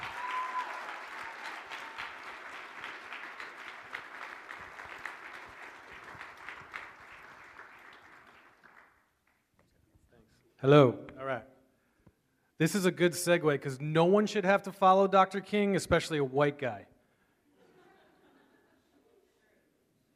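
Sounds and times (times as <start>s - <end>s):
audience applause at an MLK chapel service welcoming a speaker: 0.0s - 9.4s
speech: 10.6s - 11.0s, 12.6s - 16.9s
laughter: 17.5s - 19.4s.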